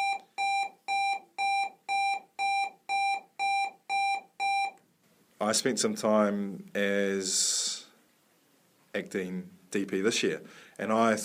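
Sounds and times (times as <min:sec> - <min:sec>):
school bell electronic beeps: 0:00.0 - 0:04.8
speech: 0:05.4 - 0:07.8, 0:09.0 - 0:11.2.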